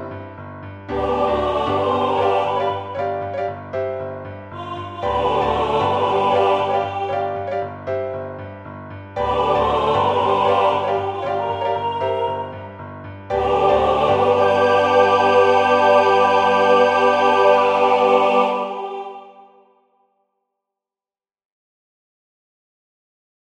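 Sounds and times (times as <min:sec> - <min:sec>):
MIDI piano: 0:00.0 - 0:19.6
MIDI choir singing: 0:00.9 - 0:08.2, 0:09.2 - 0:19.9.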